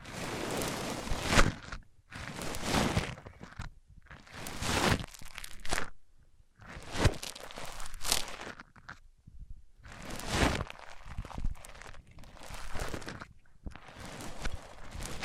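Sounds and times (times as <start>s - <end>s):
microphones rubbed on different surfaces: 0.0s - 5.2s, 9.8s - 15.2s.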